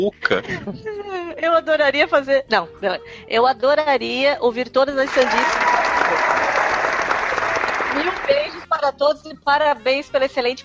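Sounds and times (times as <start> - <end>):
speech: 0.0 - 6.4, 8.0 - 10.6
crowd applause: 5.1 - 8.6.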